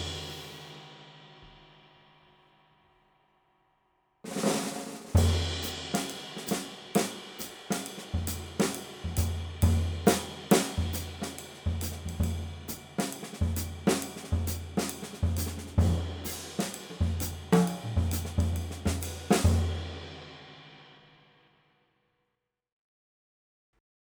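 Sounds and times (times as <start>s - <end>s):
Gretsch Solid Shell birdseye maple snare drum: 0.0s - 0.8s, 4.3s - 20.2s.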